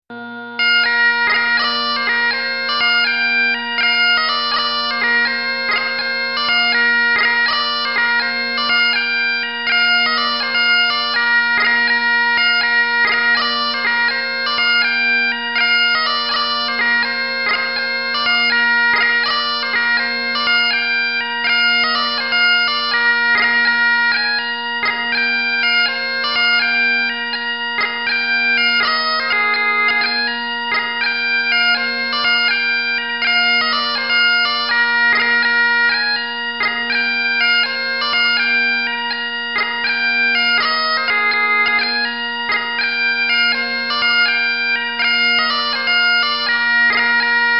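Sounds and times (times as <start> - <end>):
birthday march music: 0.1 - 47.5.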